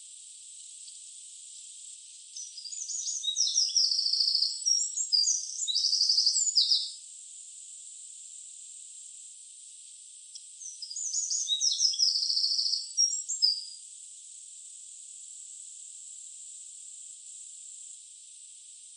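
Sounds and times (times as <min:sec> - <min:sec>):
Eurasian wren Troglodytes troglodytes singing a rapid high-pitched jumble: 0:02.2 - 0:07.0, 0:10.6 - 0:13.8.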